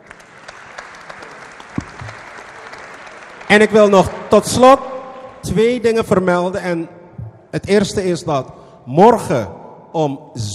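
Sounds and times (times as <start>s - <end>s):
audience applause: 0.0s - 4.4s
speech: 3.5s - 10.5s.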